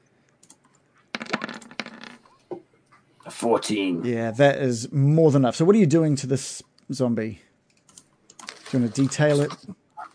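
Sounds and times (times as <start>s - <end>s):
die clattering across a hard tabletop: 1.1s - 2.3s
speech: 3.3s - 7.5s, 8.7s - 9.8s.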